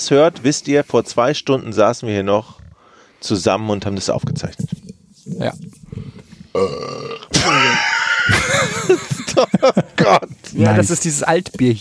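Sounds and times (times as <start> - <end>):
speech: 0.0 - 2.6, 3.2 - 4.7, 5.4 - 5.7, 6.6 - 7.0, 8.9 - 11.7
burp: 6.5 - 8.3
laughter: 7.4 - 10.3.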